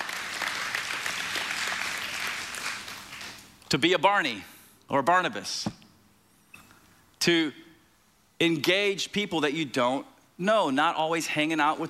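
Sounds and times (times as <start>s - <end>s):
audience applause: 0.0s - 3.4s
speech: 3.7s - 5.8s, 7.2s - 7.6s, 8.4s - 11.8s.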